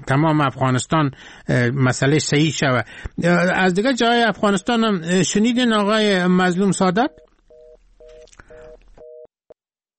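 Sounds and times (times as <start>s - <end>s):
speech: 0.1s - 7.3s
telephone busy signal after call dropped: 7.1s - 9.3s.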